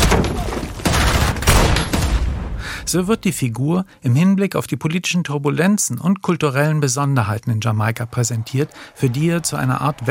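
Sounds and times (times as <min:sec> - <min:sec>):
gunfire in a film shooting scene set in Jamaica: 0:00.0 - 0:02.7
speech: 0:02.9 - 0:10.0.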